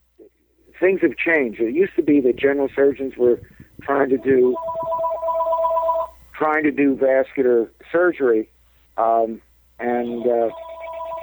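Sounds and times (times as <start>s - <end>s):
speech: 0.8s - 4.8s, 6.4s - 10.6s
telephone ringing with an incoming call: 1.8s - 6.3s, 9.8s - 11.2s.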